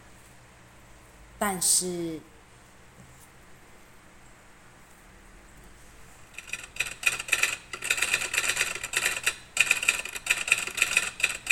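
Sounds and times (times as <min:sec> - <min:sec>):
speech: 0:01.4 - 0:02.3
typewriter keys clacking: 0:06.4 - 0:11.5.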